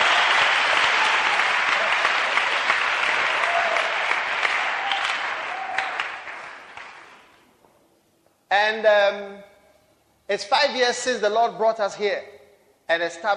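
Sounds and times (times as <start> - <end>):
audience clapping: 0.0 - 7.4
speech: 8.6 - 9.4, 10.3 - 13.3.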